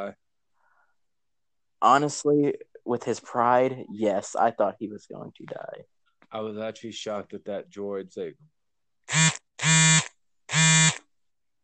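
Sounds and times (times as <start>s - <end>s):
speech: 0.0s - 0.2s, 1.8s - 9.3s
phone vibrating with notifications: 9.1s - 11.0s.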